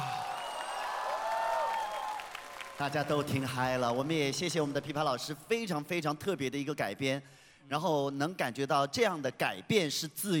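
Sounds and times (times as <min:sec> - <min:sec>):
audience applause after a pipa-accompanied performance: 0:00.0 - 0:04.7
speech: 0:02.8 - 0:10.3.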